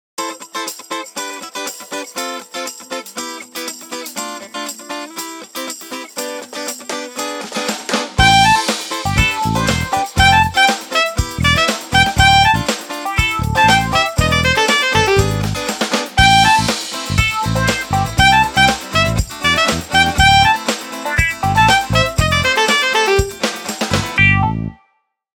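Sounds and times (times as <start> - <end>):
ringtone melody: 8.2 - 15.5, 16.2 - 23.3, 24.2 - 24.8.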